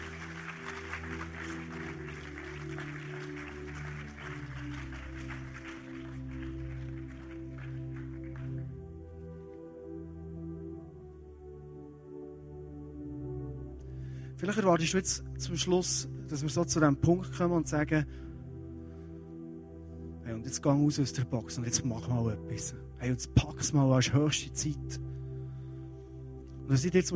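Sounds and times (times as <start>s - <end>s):
audience applause: 0.0s - 8.7s
speech: 14.4s - 18.3s, 20.5s - 25.0s, 26.7s - 27.1s.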